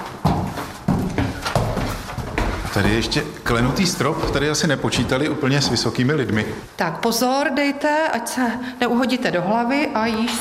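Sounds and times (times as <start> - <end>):
footsteps climbing old wooden stairs in the Tišnov museum: 0.0 - 6.7
speech: 2.8 - 10.3.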